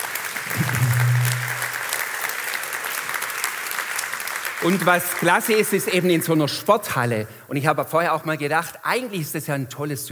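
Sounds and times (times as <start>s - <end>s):
audience applause: 0.0s - 5.8s
speech: 4.6s - 10.1s.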